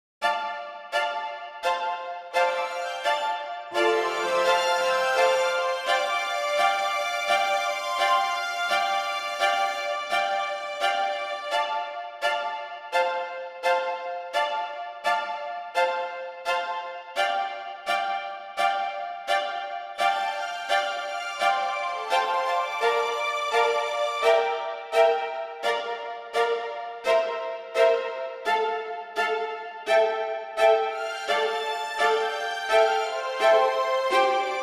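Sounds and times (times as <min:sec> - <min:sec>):
strings: 0:00.2 - 0:34.6.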